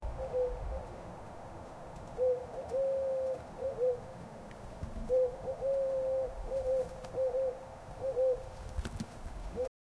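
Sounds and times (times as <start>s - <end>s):
birds: 1.9s - 9.7s.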